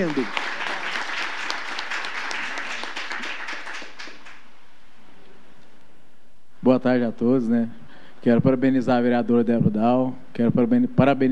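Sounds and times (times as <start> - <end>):
speech: 0.0 - 0.6, 6.6 - 11.3
applause: 0.0 - 4.5.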